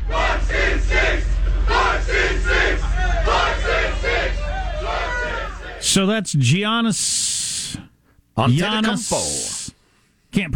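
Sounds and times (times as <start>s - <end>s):
low rumble: 0.0s - 6.0s
fans cheering and chanting at a drive-through: 0.0s - 6.2s
speech: 5.8s - 9.5s, 10.3s - 10.5s.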